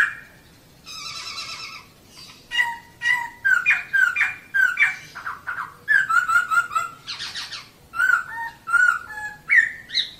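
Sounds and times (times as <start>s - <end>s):
bird song: 0.0s - 10.1s.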